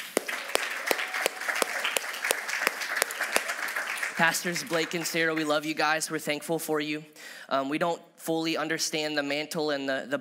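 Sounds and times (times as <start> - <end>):
audience applause: 0.0 - 5.5
speech: 4.2 - 10.1.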